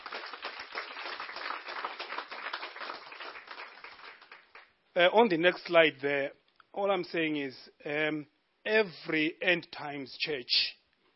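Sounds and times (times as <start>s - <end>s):
audience round of applause: 0.0s - 4.7s
speech: 5.0s - 10.8s.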